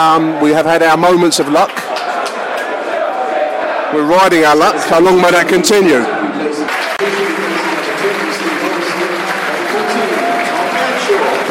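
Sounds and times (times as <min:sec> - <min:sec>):
speech: 0:00.0 - 0:02.0, 0:03.9 - 0:06.4
stadium crowd applauding a substituted player: 0:01.6 - 0:02.8, 0:06.7 - 0:11.4.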